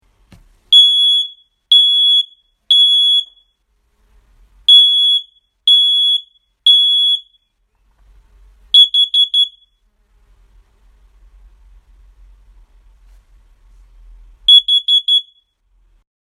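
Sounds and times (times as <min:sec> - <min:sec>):
alarm: 0:00.7 - 0:03.6, 0:04.7 - 0:07.5, 0:08.8 - 0:09.8, 0:14.5 - 0:15.6.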